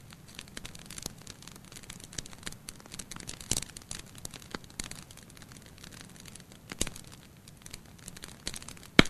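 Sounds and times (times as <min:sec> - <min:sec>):
campfire crackling: 0:00.0 - 0:09.0.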